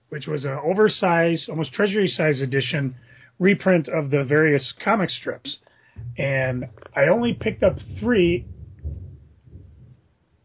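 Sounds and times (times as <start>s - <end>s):
speech: 0.1s - 8.6s
thunder from very close lightning: 6.0s - 10.4s.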